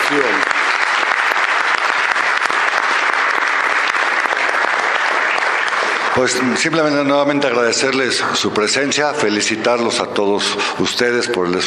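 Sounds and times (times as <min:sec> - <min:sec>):
audience applause: 0:00.0 - 0:09.0
speech: 0:06.2 - 0:11.6.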